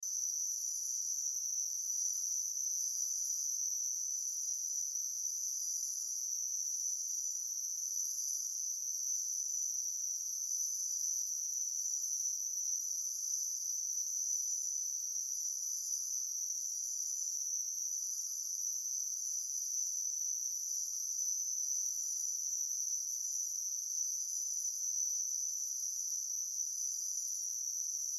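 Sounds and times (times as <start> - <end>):
insect high-pitched chirping: 0.1 - 28.1.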